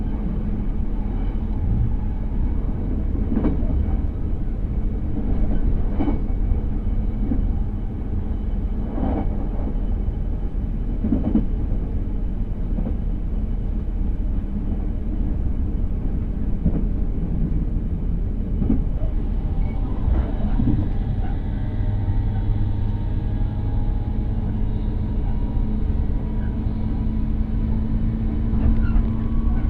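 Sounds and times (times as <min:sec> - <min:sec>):
train ride rumble: 0:00.0 - 0:29.6.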